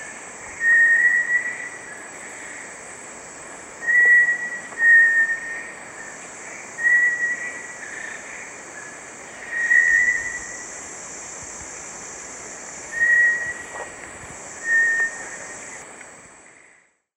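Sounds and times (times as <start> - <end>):
Bartlett's tinamou whistling song: 0.6 - 1.9, 3.8 - 5.7, 6.8 - 7.8, 9.5 - 10.6, 13.0 - 13.6, 14.6 - 15.4.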